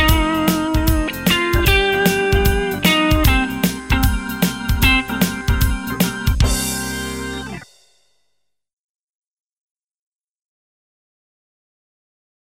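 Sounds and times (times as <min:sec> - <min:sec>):
vibrato tone: 0:00.2 - 0:07.6.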